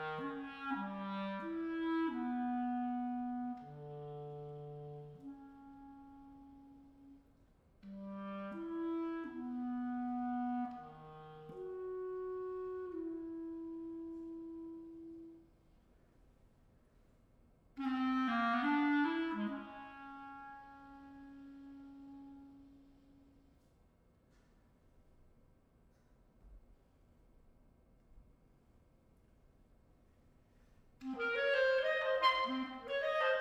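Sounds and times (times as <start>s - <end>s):
solo clarinet: 0.0s - 15.6s, 17.8s - 23.7s, 31.0s - 33.3s.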